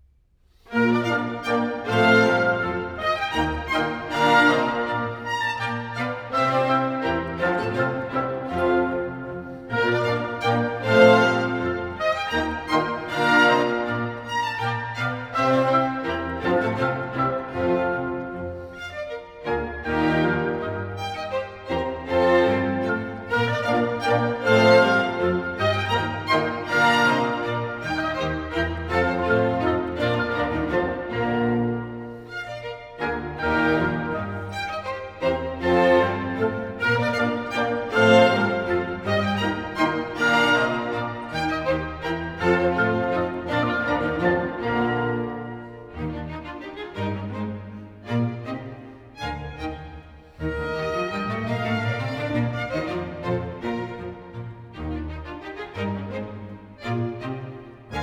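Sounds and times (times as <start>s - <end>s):
classical minuet in B flat major: 0.0s - 58.0s.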